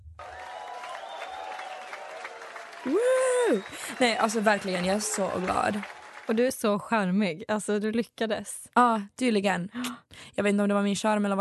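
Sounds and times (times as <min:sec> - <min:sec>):
applause: 0:00.0 - 0:06.7
speech: 0:02.8 - 0:11.4.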